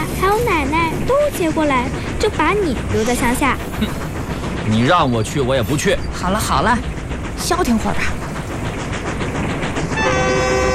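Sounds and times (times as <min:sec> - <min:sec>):
train travelling toward a provincial capital: 0:00.0 - 0:10.7
speech: 0:00.3 - 0:04.1, 0:04.7 - 0:08.2
sustained bright train horn tone: 0:10.0 - 0:10.7.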